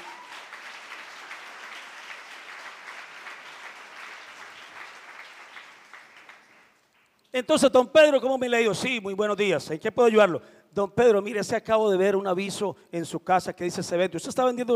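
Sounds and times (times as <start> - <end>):
crowd applauding: 0.0 - 7.1
speech: 7.4 - 14.7.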